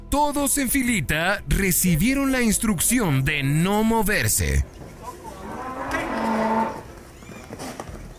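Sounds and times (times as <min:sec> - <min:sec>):
speech: 0:00.1 - 0:04.8
bull bellowing during a teacher's demonstration in Nuevo León, Mexico: 0:05.1 - 0:07.0.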